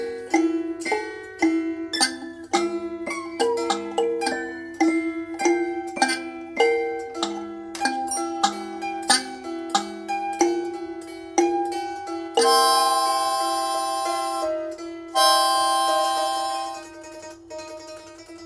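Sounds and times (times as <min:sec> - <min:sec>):
gamelan music: 0:00.0 - 0:18.4.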